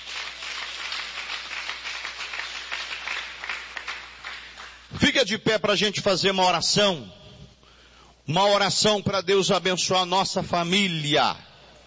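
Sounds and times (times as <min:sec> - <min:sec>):
audience clapping hands: 0:00.0 - 0:05.1
speech: 0:05.0 - 0:07.2, 0:08.3 - 0:11.5.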